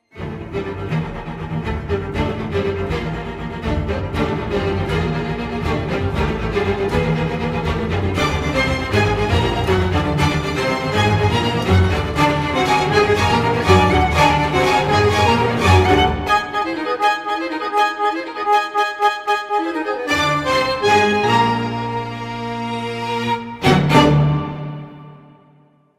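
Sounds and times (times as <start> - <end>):
concerto for violin and bandoneon: 0.2 - 25.4.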